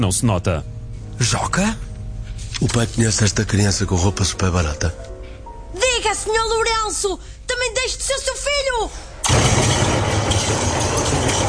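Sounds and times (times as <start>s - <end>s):
speech: 0.0s - 1.9s, 2.6s - 5.1s, 6.1s - 9.4s
thunder rumbling: 9.2s - 11.4s.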